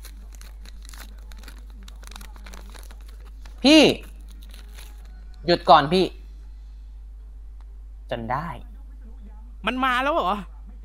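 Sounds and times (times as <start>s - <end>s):
plastic wrapper being torn open: 0.0s - 5.2s
speech: 3.6s - 4.1s, 5.5s - 6.2s, 8.1s - 8.7s, 9.6s - 10.5s.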